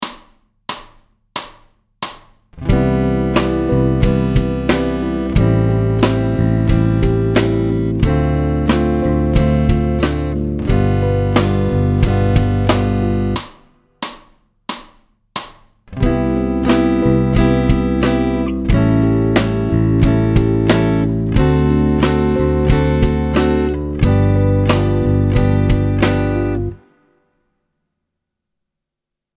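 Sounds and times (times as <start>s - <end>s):
musical chord: 2.6s - 13.4s, 16.0s - 26.8s.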